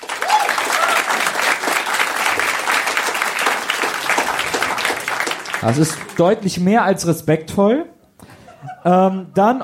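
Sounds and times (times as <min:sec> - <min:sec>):
audience applause: 0:00.0 - 0:06.4
speech: 0:05.6 - 0:07.9, 0:08.8 - 0:09.6.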